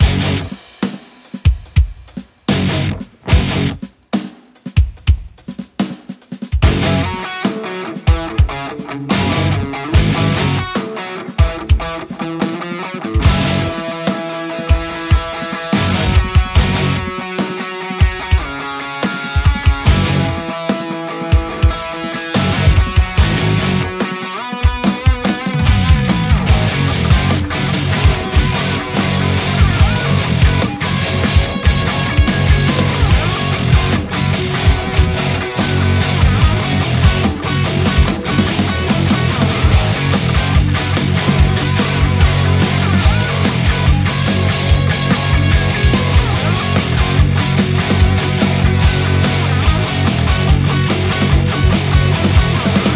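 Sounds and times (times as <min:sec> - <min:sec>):
funk rock music: 0:00.0 - 0:52.9.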